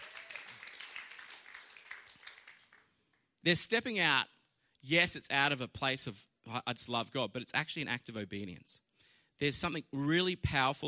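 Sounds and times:
audience cheering and applauding: 0.0s - 2.9s
speech: 3.4s - 8.8s, 9.4s - 10.8s.

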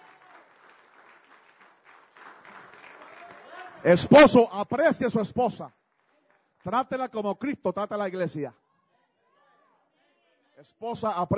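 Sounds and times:
crowd applauding: 0.0s - 7.2s
speech: 3.8s - 5.8s, 6.6s - 8.6s, 10.6s - 11.3s.

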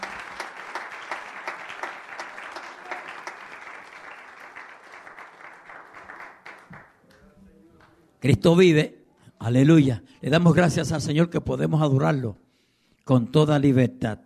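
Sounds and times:
audience applause: 0.0s - 7.1s
speech: 8.2s - 12.4s, 13.1s - 14.2s.

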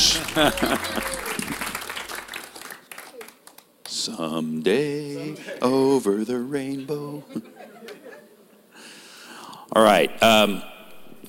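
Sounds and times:
laughter: 0.0s - 2.1s, 5.0s - 6.0s, 6.8s - 8.6s
audience applause at a community event: 0.0s - 3.7s
speech: 0.3s - 1.3s, 4.0s - 7.6s, 9.7s - 10.7s.

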